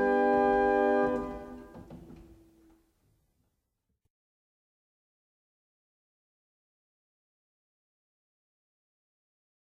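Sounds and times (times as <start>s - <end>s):
barrel organs playing a German hymn: 0.0s - 2.4s.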